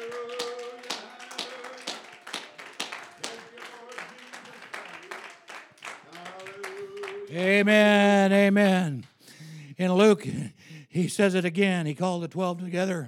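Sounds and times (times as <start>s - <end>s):
audience hand clapping: 0.0s - 9.3s
speech: 7.3s - 9.1s, 9.8s - 13.0s.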